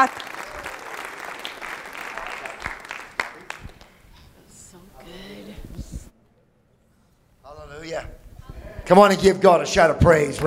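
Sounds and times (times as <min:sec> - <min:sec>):
speech: 0:00.0 - 0:00.3, 0:08.9 - 0:10.4
audience applause: 0:00.0 - 0:04.0.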